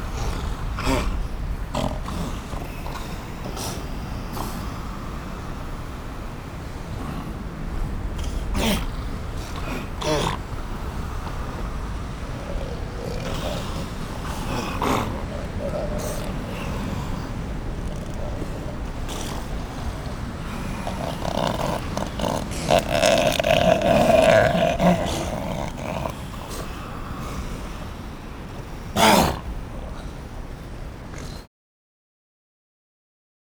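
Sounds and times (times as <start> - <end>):
wild animal sound effects: 0.0 - 31.5.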